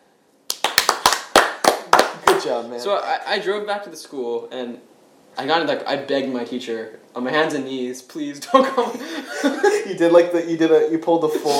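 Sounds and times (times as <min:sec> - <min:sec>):
hand claps: 0:00.5 - 0:02.5
speech: 0:02.4 - 0:11.5
laughter: 0:08.4 - 0:10.0.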